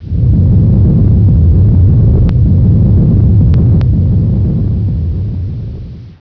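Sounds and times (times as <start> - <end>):
rumble: 0.0 - 6.2.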